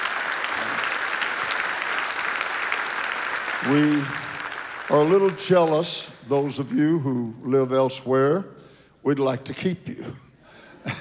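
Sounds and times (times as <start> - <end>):
congregation applauding at a camp worship service: 0.0 - 7.0
speech: 3.6 - 4.2, 4.9 - 10.2.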